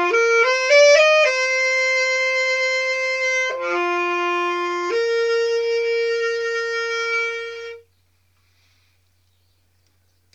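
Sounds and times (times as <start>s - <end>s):
saxophone: 0.0s - 7.9s.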